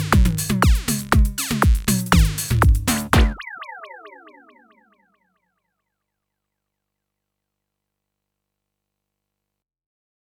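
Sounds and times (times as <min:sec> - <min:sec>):
psytrance synth sequence: 0:00.0 - 0:05.1.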